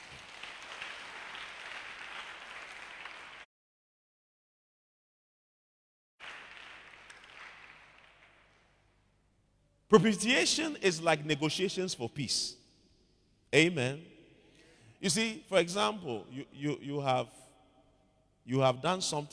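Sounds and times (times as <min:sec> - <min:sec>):
audience clapping: 0:00.0 - 0:03.5, 0:06.2 - 0:09.0
speech: 0:09.9 - 0:12.6, 0:13.5 - 0:14.1, 0:15.0 - 0:17.4, 0:18.4 - 0:19.3.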